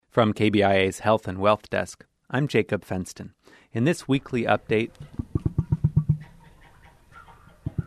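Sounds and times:
speech: 0.2 - 5.2
emus calling to each other: 4.4 - 7.8.

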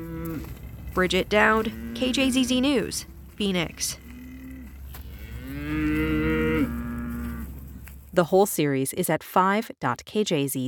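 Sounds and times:
cow mooing: 0.0 - 7.6
speech: 1.0 - 4.0, 8.2 - 10.6.

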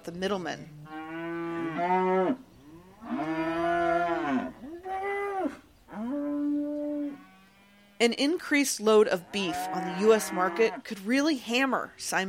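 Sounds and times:
speech: 0.0 - 1.0, 1.8 - 3.5, 8.0 - 12.2
range cattle mooing: 0.8 - 8.1, 9.3 - 10.8.

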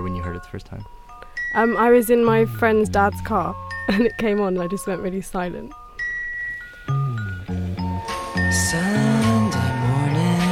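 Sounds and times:
bell-like xylophone tones in a song: 0.0 - 10.5
speech: 0.5 - 5.8, 8.6 - 9.2
warm sustained low chords: 1.6 - 5.7, 6.8 - 10.5.

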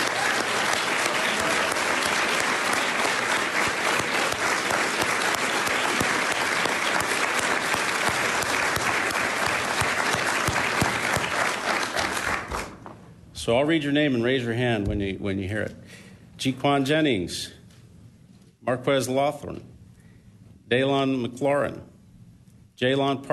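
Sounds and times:
audience applause: 0.0 - 12.8
speech: 13.5 - 15.8, 16.4 - 17.6, 18.7 - 19.7, 20.7 - 21.9, 22.8 - 23.3.

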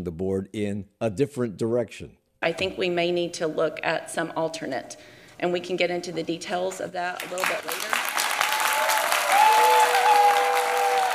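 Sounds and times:
speech: 0.0 - 8.0
crowd applause: 7.2 - 11.1.

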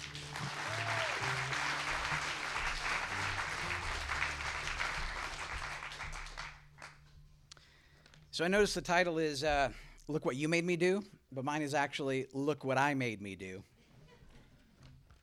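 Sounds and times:
audience applause: 0.0 - 7.0
speech: 8.4 - 13.7.

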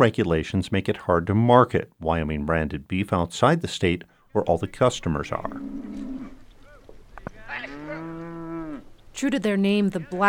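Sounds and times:
speech: 0.0 - 6.4, 9.2 - 10.2
cattle mooing during a cattle drive near Centennial in southern Wyoming: 5.3 - 6.5, 7.4 - 9.0.

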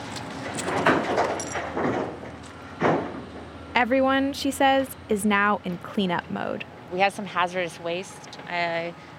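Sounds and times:
backhoes dumping debris of crumbled homes into trucks: 0.4 - 3.2
speech: 3.8 - 9.1.

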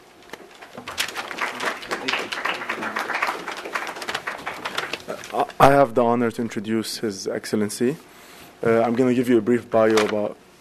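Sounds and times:
audience applause at a forum on U.S.-Azerbaijani relations: 0.7 - 5.5
speech: 5.6 - 10.4.

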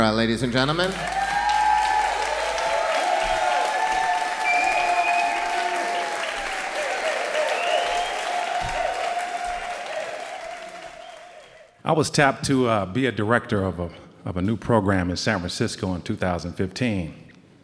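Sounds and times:
speech: 0.0 - 1.2, 11.9 - 17.2
enormous round of audience applause: 0.4 - 11.8.

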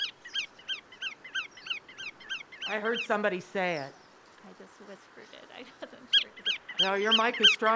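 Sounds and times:
black-tailed godwit call: 0.0 - 3.2, 6.1 - 7.7
speech: 2.7 - 7.7.

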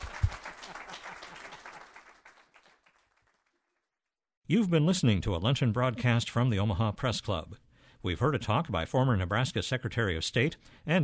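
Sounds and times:
audience applause for guest speaker: 0.0 - 3.7
speech: 4.5 - 11.0.

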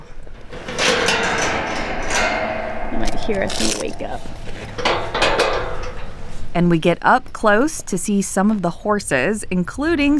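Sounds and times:
long metal gate rattling: 0.0 - 6.6
speech: 3.2 - 4.9, 6.6 - 10.1.

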